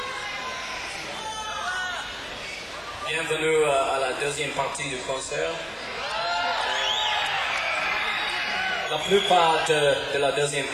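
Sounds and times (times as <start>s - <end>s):
concert audience shouting and whooping: 0.0s - 3.1s, 5.7s - 10.2s
speech: 3.1s - 5.8s, 8.9s - 10.7s.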